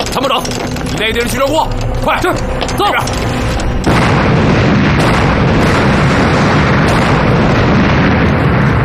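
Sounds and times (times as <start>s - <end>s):
speech: 0.1s - 3.5s
dock explosion: 3.8s - 8.8s.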